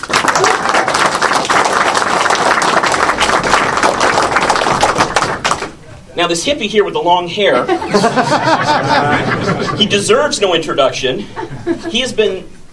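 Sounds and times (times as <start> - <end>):
audience applause: 0.0 - 5.8
speech: 6.2 - 12.6
laughter: 7.5 - 10.3, 11.2 - 12.4.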